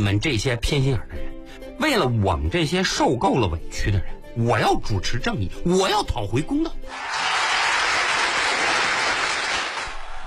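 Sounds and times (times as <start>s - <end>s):
speech: 0.0s - 7.2s
audience applause: 6.9s - 10.2s.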